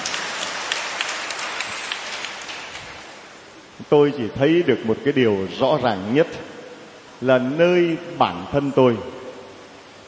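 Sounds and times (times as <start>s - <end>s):
audience applause: 0.0s - 3.1s
speech: 3.8s - 6.5s, 7.2s - 9.2s.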